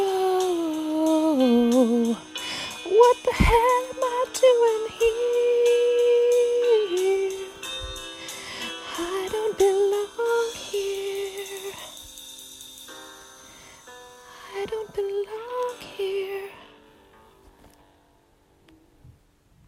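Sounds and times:
person singing: 0.0s - 7.7s, 8.5s - 12.1s, 14.4s - 16.7s.

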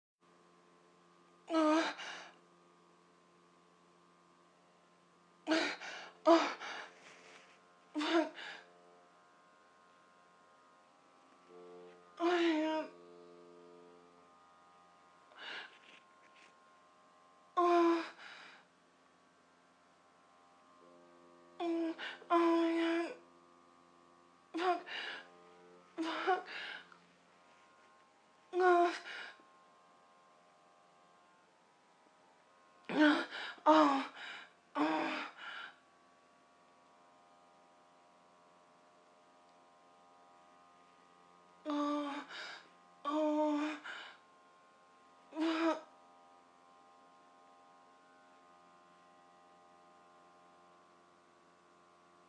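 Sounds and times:
person moaning: 1.5s - 2.4s, 5.5s - 7.0s, 8.0s - 8.6s, 12.2s - 13.0s, 17.6s - 18.5s, 21.6s - 23.2s, 24.5s - 25.2s, 26.0s - 26.9s, 28.6s - 29.4s, 32.9s - 35.8s, 41.6s - 44.2s, 45.3s - 45.9s.

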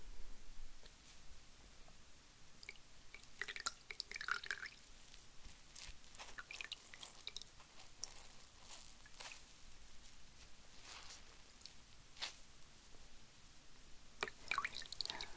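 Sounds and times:
water dripping: 2.5s - 10.0s, 11.4s - 11.8s, 14.2s - 15.3s
wringing out a wet cloth: 2.6s - 9.5s, 14.2s - 15.3s.

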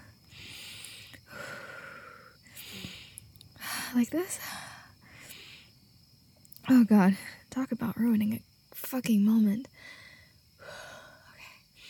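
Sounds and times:
heavy breathing: 0.0s - 5.9s, 9.8s - 11.8s
speech: 3.9s - 4.6s, 6.7s - 9.9s.

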